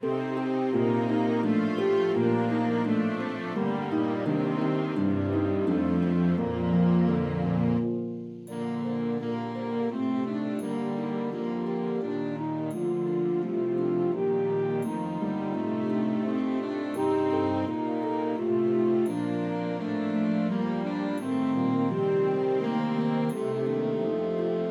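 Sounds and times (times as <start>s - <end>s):
saxophone melody: 0.0s - 24.6s.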